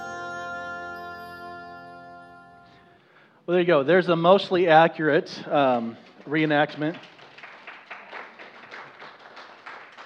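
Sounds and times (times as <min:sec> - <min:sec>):
speech: 0:03.5 - 0:07.1
audience clapping: 0:05.6 - 0:10.0.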